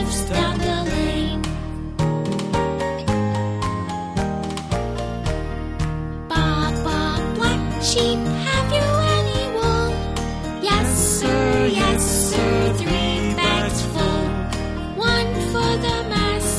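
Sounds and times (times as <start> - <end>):
nursery rhyme tune: 0.0 - 16.5.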